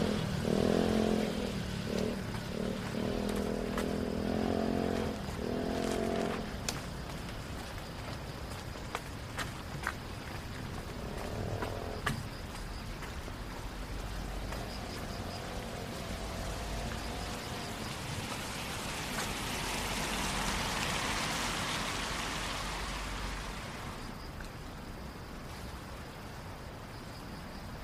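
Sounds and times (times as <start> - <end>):
vehicle passing: 0.0 - 6.7, 13.8 - 24.1
rain hiss downtown at night: 0.0 - 27.8.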